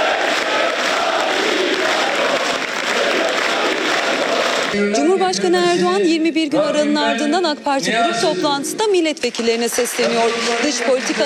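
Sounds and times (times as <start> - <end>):
applause at an AK Party group meeting: 0.0 - 4.9, 9.2 - 11.2
crowd noise at an AK Party group meeting: 0.0 - 11.2
speech: 4.8 - 11.2.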